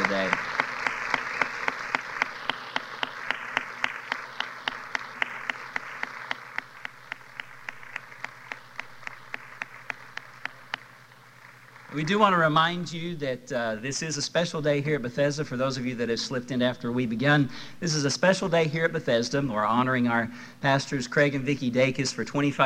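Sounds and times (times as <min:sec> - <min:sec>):
audience applause: 0:00.0 - 0:12.4
speech: 0:12.0 - 0:22.6.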